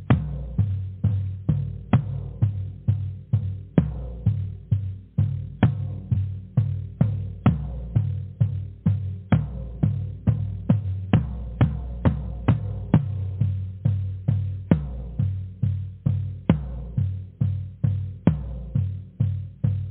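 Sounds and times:
booming drum beat: 0.0 - 19.9.

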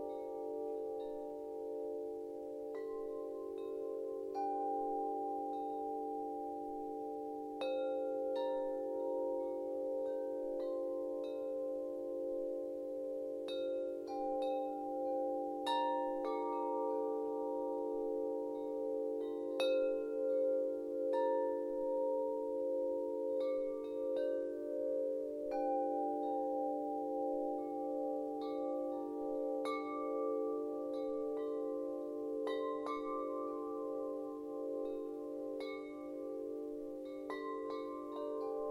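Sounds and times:
serene wind chimes: 0.0 - 38.6.

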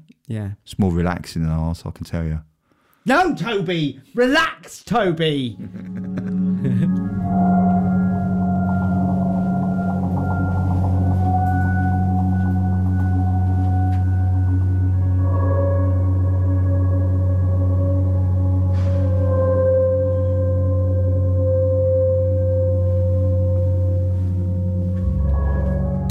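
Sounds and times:
speech: 0.3 - 6.8
laughter: 5.5 - 7.3
ambient installation music of layered sustained drone tones: 5.5 - 26.0.

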